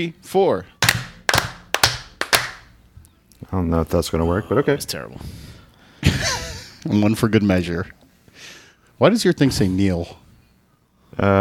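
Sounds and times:
speech: 0.0 - 0.7, 3.5 - 5.5, 6.2 - 10.2, 11.2 - 11.3
small group clapping hands: 0.8 - 2.7.

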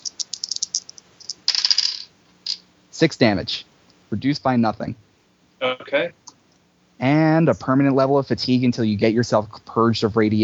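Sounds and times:
dice rattling and clacking: 0.0 - 2.6
speech: 3.0 - 5.0, 5.6 - 6.2, 7.0 - 10.4.

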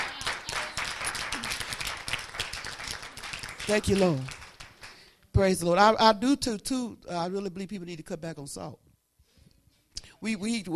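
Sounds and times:
audience clapping: 0.0 - 5.2
speech: 3.7 - 4.4, 5.4 - 8.8, 10.2 - 10.7.

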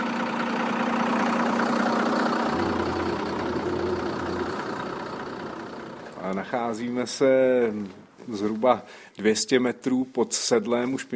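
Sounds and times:
bus engine starting and driving uphill: 0.0 - 8.4
speech: 6.3 - 11.1.

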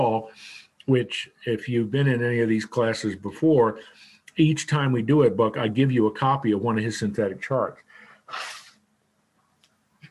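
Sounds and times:
speech: 0.0 - 8.6
nose blowing: 8.3 - 8.8.

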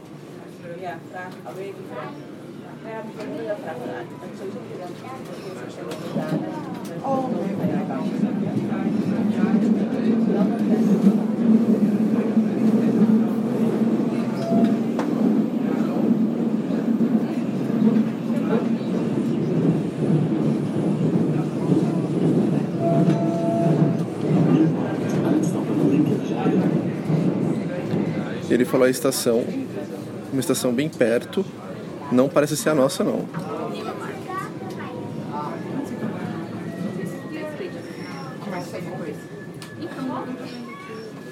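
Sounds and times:
speech: 0.8 - 12.9, 28.7 - 33.6
train rolling along the tracks: 4.0 - 41.2.

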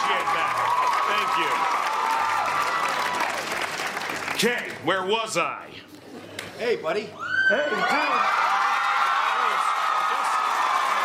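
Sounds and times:
audience applause: 0.0 - 4.8, 7.8 - 11.0
speech: 0.1 - 1.9, 4.4 - 6.0, 6.6 - 8.5.

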